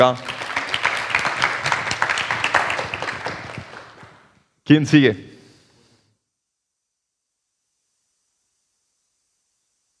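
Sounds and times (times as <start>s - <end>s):
speech: 0.0s - 0.3s, 4.7s - 5.3s
audience applause: 0.0s - 4.3s.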